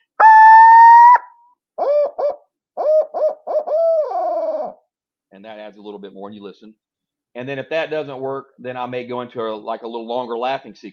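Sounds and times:
turkey hen scream into hitched roll call: 0:00.2 - 0:04.8
speech: 0:05.4 - 0:10.9.

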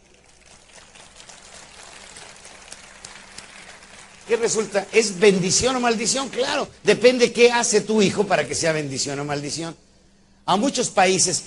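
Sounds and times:
audience applause: 0:00.0 - 0:05.8
speech: 0:04.3 - 0:09.9, 0:10.5 - 0:11.4.

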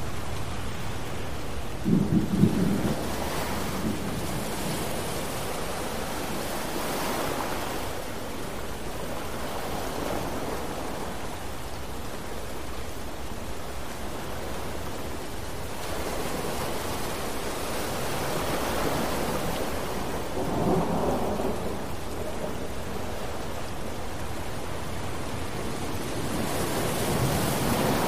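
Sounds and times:
ocean waves: 0:00.0 - 0:28.0
rain: 0:00.0 - 0:28.0
thunderstorm rumbling: 0:01.6 - 0:06.9, 0:17.4 - 0:28.0.

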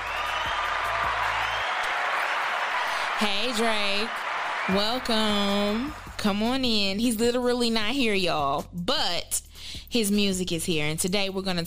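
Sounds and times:
applause sound effect welcoming an artist: 0:00.0 - 0:06.3
speech: 0:03.2 - 0:11.6.

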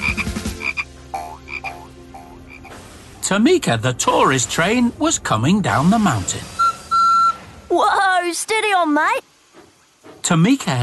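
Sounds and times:
Kuranda tree frog croaking: 0:00.0 - 0:02.8
speech: 0:03.3 - 0:06.6, 0:07.7 - 0:09.3, 0:10.2 - 0:10.8.

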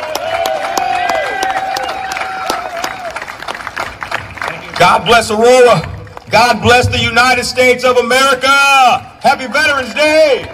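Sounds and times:
audience applause: 0:00.0 - 0:06.8
speech: 0:04.8 - 0:10.5.

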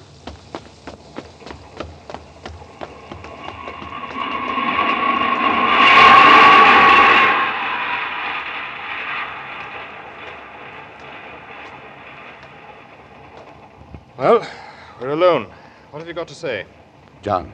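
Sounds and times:
footsteps hurrying in underground tube station: 0:00.0 - 0:06.6, 0:09.1 - 0:15.2
underground train roaring into tube station: 0:00.0 - 0:17.0
speech: 0:15.2 - 0:17.5.

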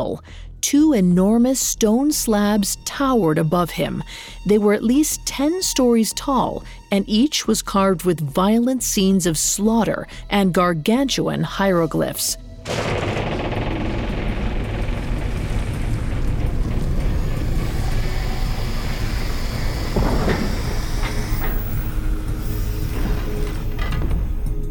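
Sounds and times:
speech: 0:00.0 - 0:13.2
ancient gears turning: 0:12.7 - 0:24.0.

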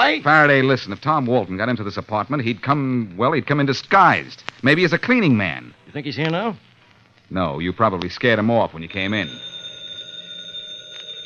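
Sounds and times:
speech: 0:00.1 - 0:06.7, 0:07.3 - 0:09.5
telephone ringing: 0:08.8 - 0:11.2.

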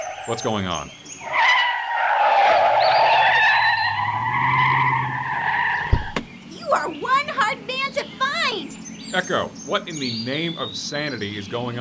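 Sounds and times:
car tires squealing as a car skids: 0:00.0 - 0:08.6
speech: 0:00.3 - 0:01.0, 0:09.1 - 0:11.7.

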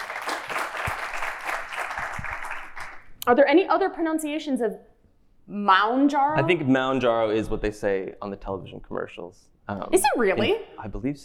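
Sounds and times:
audience clapping: 0:00.0 - 0:03.2
speech: 0:03.2 - 0:04.9, 0:05.5 - 0:11.2.

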